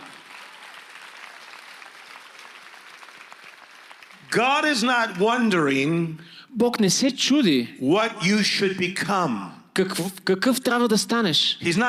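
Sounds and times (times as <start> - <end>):
crowd applauding: 0.0 - 4.9
speech: 4.3 - 11.8.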